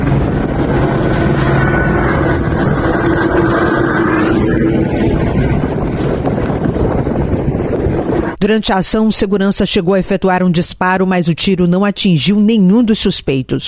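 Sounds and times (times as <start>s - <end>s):
police helicopter rotor roaring: 0.0s - 10.1s
speech: 8.4s - 13.6s.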